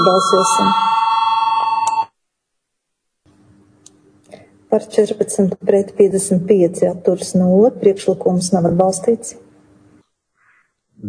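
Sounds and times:
speech: 0:00.0 - 0:00.9, 0:04.7 - 0:09.5
parliamentary voting bell ringing: 0:00.0 - 0:02.1.

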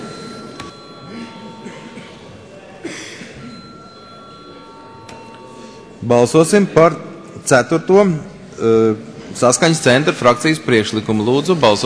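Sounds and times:
parliament electronic bell before a vote: 0:00.0 - 0:08.6
low murmur of voices: 0:00.0 - 0:11.8
speech: 0:06.0 - 0:11.8.

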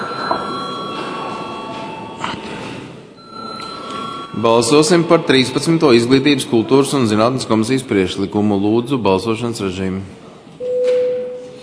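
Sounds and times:
parliament chamber bell ringing: 0:00.0 - 0:02.2, 0:03.2 - 0:06.3
speech: 0:04.4 - 0:10.2.

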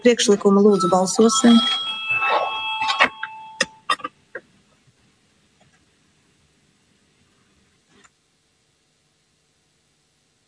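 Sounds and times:
speech: 0:00.0 - 0:01.9
parliamentary voting bell steady high electronic ring: 0:00.2 - 0:03.9.

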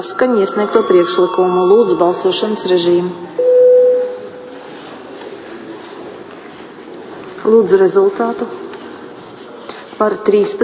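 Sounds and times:
speech: 0:00.0 - 0:03.4, 0:07.5 - 0:08.6, 0:10.0 - 0:10.6
parliament voting bell electronic signal tone: 0:00.0 - 0:04.6.

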